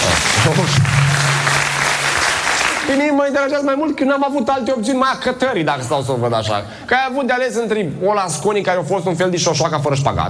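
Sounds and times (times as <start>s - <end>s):
talk show audience applause: 0.0s - 3.1s
speech: 2.9s - 10.2s.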